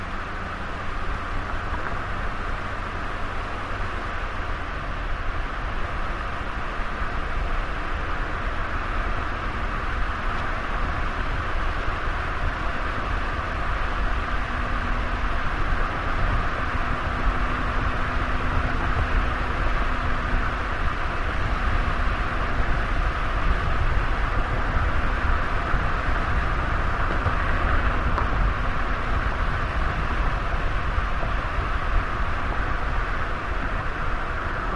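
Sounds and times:
car tires on asphalt: 0:00.0 - 0:34.7.

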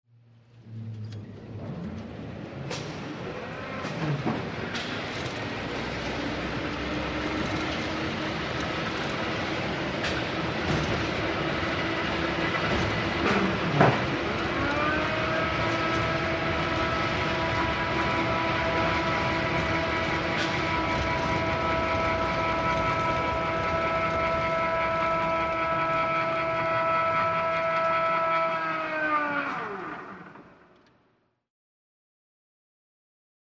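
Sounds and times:
crane motor whirring lifting object: 0:00.2 - 0:31.1.

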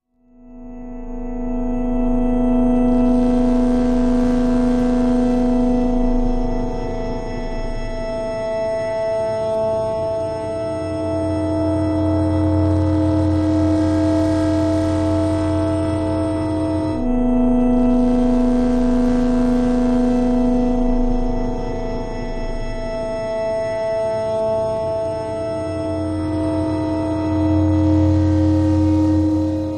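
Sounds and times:
electronic tension music: 0:00.4 - 0:29.7.

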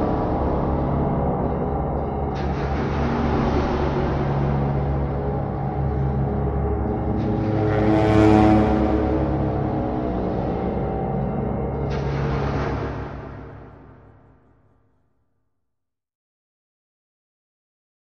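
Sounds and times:
eerie low ghostly music pads: 0:00.0 - 0:14.9.

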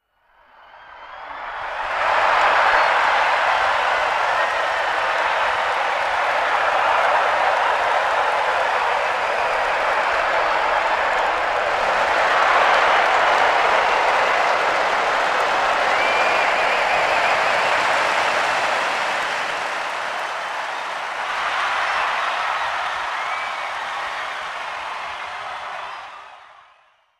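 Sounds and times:
huge football crowd: 0:00.0 - 0:27.1.

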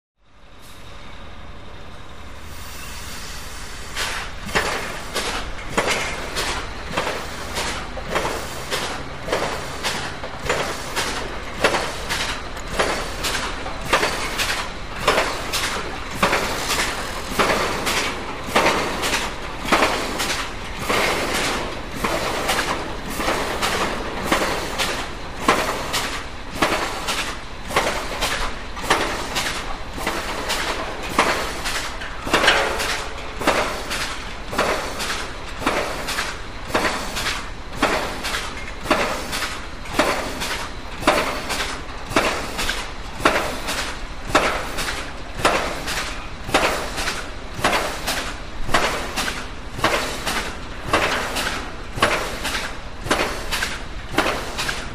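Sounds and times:
pile driver starting up: 0:04.0 - 0:54.9.

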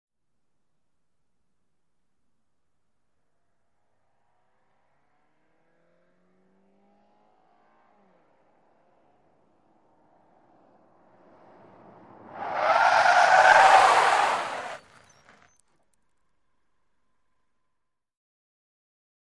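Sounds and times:
small compact car accelerating: 0:05.6 - 0:15.5
small compact car tyres skidding: 0:10.6 - 0:15.6.

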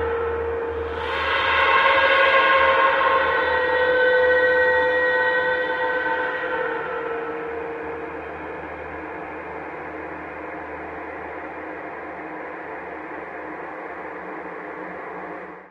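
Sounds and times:
slow rising evolving scream ambience: 0:00.0 - 0:11.2.

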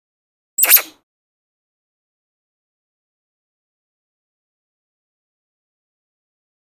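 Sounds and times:
spider monkey short high-pitched chirps: 0:00.6 - 0:00.9.

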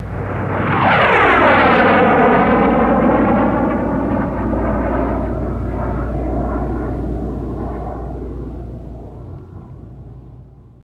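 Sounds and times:
F-86 Sabre jet passing by: 0:00.0 - 0:10.8.

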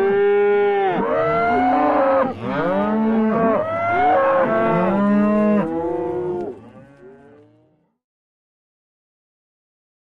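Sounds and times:
cow mooing: 0:00.0 - 0:07.8.

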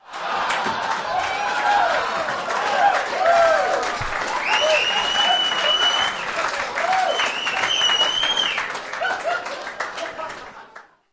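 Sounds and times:
applause: 0:00.0 - 0:11.1
whistles: 0:04.3 - 0:08.8
laughter: 0:09.0 - 0:10.4.

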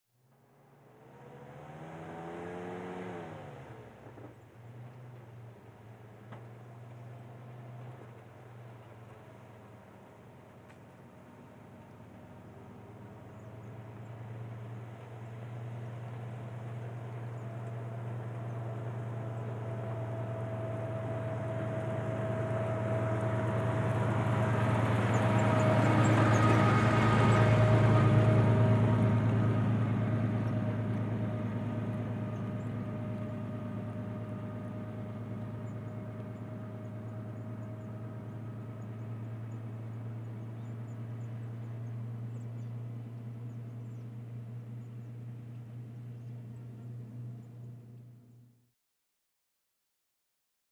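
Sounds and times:
1947 Dodge pickup truck driving slowly by: 0:00.3 - 0:48.2.

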